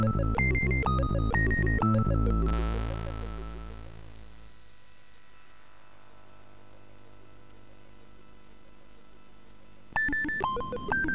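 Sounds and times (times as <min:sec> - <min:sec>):
horror chiptune music on a MOS6581R4 sound chip: 0:00.0 - 0:04.2, 0:10.1 - 0:11.1.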